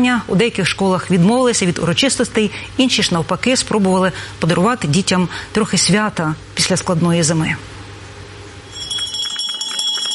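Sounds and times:
speech: 0.0s - 7.8s
school last bell ringing: 8.7s - 10.1s.

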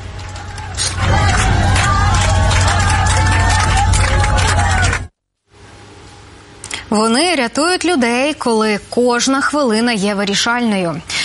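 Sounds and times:
passengers applauding: 0.0s - 5.1s
speech: 6.9s - 11.2s.

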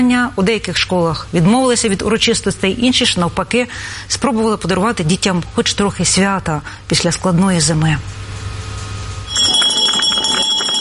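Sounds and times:
speech: 0.0s - 8.2s
school last bell ringing: 9.3s - 10.7s.

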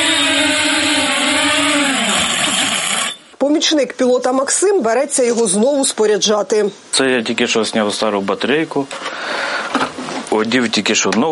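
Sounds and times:
military drone flying back: 0.0s - 3.2s
speech: 3.6s - 9.4s, 10.4s - 11.3s.

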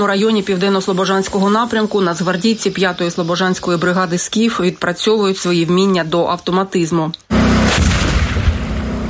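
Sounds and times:
speech: 0.0s - 7.9s
standard 125 mm tank gun firing: 7.6s - 8.9s.

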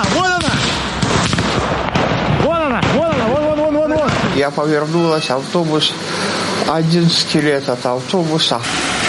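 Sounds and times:
Russian missile strike explosion in Kramatorsk: 0.0s - 4.4s
speech: 4.4s - 8.9s.

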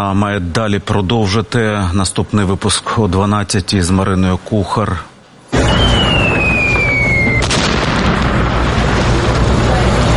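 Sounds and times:
speech: 0.0s - 5.1s
drone strike on concrete stairwell walls: 5.5s - 10.1s.

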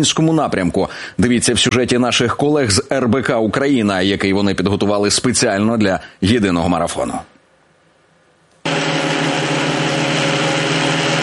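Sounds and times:
speech: 0.0s - 7.3s
drone engine buzzing hum: 8.7s - 11.2s.

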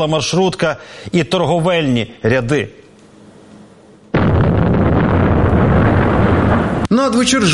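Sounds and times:
speech: 0.0s - 2.8s, 6.9s - 7.5s
Russian Shahed kamikaze drone falling and detonating: 4.1s - 6.9s.

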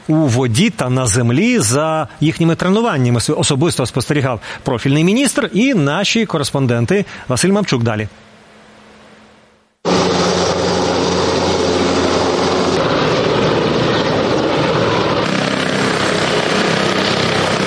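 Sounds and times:
speech: 0.1s - 8.3s
aircraft propellers droning: 8.2s - 17.6s
helicopter rotors droning: 8.2s - 17.6s.

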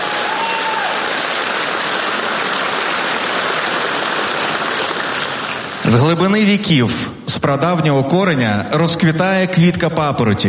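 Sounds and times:
sustained applause from a large crowd: 0.0s - 6.4s
speech: 6.0s - 10.4s.

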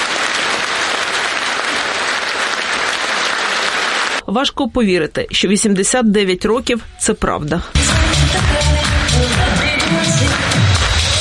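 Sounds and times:
theatre audience applauding in ovation: 0.0s - 4.2s, 8.4s - 11.2s
speech: 4.3s - 8.6s.

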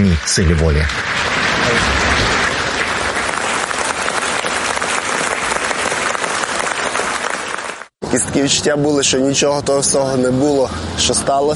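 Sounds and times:
speech: 0.0s - 2.2s, 8.2s - 11.5s
audience applause: 0.0s - 7.9s.

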